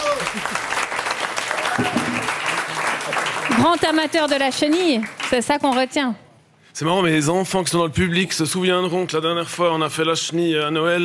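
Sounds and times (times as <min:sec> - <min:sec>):
audience applause: 0:00.0 - 0:05.6
speech: 0:03.6 - 0:06.2, 0:06.8 - 0:11.0.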